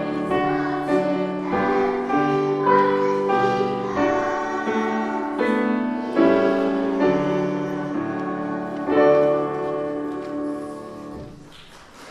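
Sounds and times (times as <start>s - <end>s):
children's choir singing: 0.0s - 12.0s.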